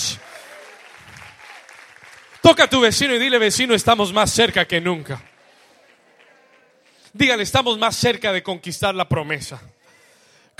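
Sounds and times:
audience applauding: 0.0s - 7.4s
speech: 2.5s - 5.3s, 7.2s - 9.8s.

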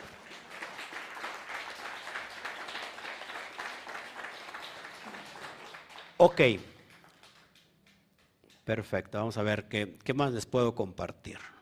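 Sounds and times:
audience applause: 0.0s - 7.6s
speech: 6.2s - 6.7s, 8.7s - 11.6s.

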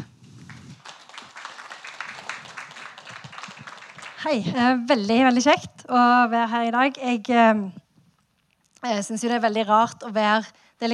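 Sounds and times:
warm audience applause: 0.5s - 4.4s
speech: 4.2s - 7.8s, 8.8s - 10.9s.

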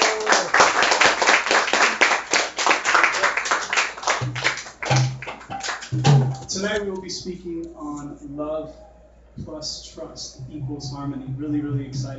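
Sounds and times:
audience applause at an evening talk: 0.0s - 6.0s
speech: 6.0s - 12.1s.

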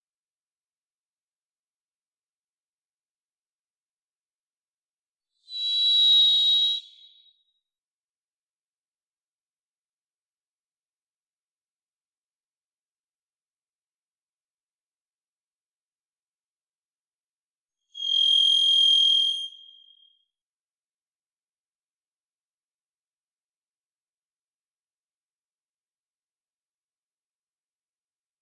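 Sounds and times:
varied thrush buzzy whistled note: 5.4s - 7.6s, 17.9s - 20.3s.

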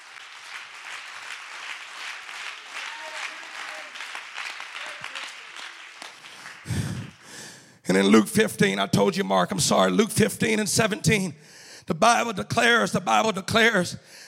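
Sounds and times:
audience clapping hands: 0.0s - 7.7s
speech: 7.9s - 14.2s.

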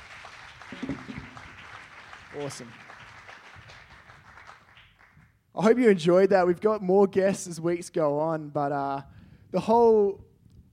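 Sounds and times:
audience applause: 0.0s - 5.2s
speech: 2.4s - 2.8s, 5.6s - 10.3s.

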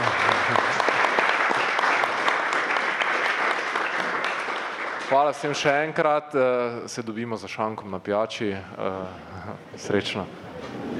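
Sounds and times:
crowd applause: 0.0s - 5.7s
speech: 5.1s - 10.9s.

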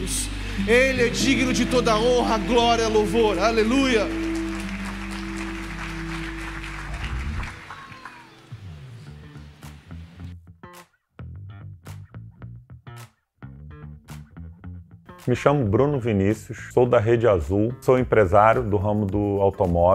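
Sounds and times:
audience applauding: 0.0s - 9.2s
speech: 0.1s - 4.2s, 15.3s - 19.9s.

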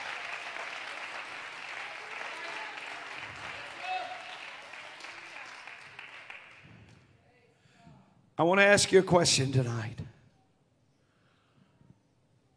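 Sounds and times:
audience hand clapping: 0.0s - 7.1s
speech: 8.4s - 10.0s.

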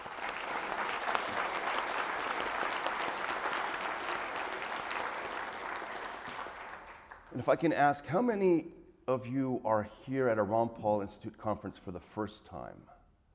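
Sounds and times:
audience applause: 0.0s - 7.4s
speech: 7.4s - 12.9s.

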